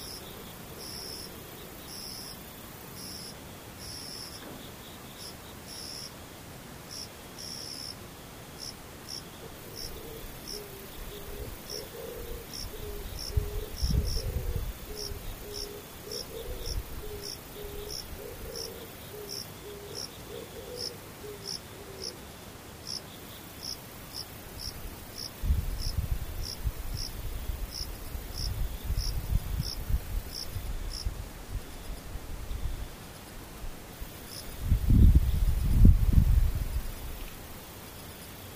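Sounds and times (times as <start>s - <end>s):
distant insects chirping: 0.0s - 6.1s, 6.9s - 31.1s, 31.7s - 38.5s.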